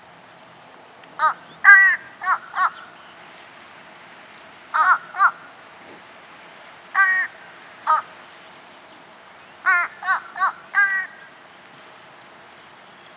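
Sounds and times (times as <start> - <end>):
fish crow uttering nasal caws: 1.2 - 2.9, 4.7 - 5.6, 6.9 - 8.2, 9.6 - 11.4.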